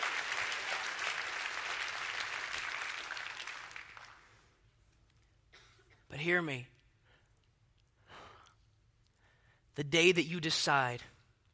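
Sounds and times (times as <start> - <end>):
church congregation clapping during a worship service: 0.0 - 4.5
speech: 6.2 - 6.7, 9.8 - 11.1.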